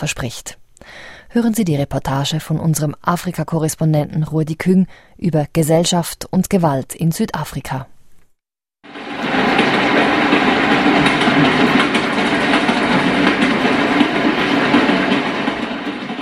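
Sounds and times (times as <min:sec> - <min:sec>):
speech: 0:00.0 - 0:07.9
commuter train from Johannesburg to Soweto rumbling: 0:08.9 - 0:16.2.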